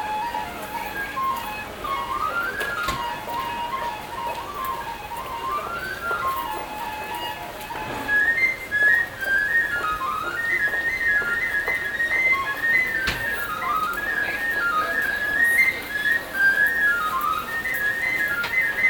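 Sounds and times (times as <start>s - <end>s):
tin whistle played by a busker in Belfast: 0.0s - 18.8s.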